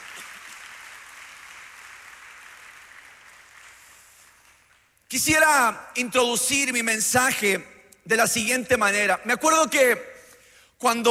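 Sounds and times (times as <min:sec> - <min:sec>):
audience applause: 0:00.0 - 0:04.6
speech: 0:05.1 - 0:10.1, 0:10.8 - 0:11.0.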